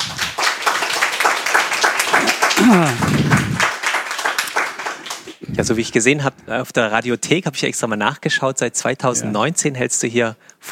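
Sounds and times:
crowd applauding: 0.0s - 5.8s
person calling out: 2.6s - 3.6s
speech: 2.7s - 3.0s, 5.6s - 10.7s.

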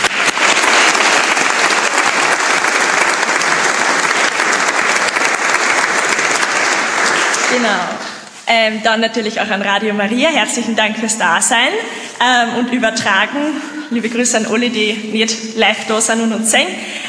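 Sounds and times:
audience applause: 0.0s - 8.1s
speech: 7.6s - 17.0s.

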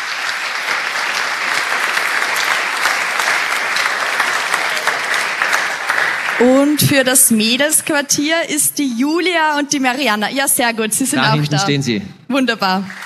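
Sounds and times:
audience applause: 0.0s - 7.7s, 12.9s - 13.0s
speech: 6.4s - 13.0s.

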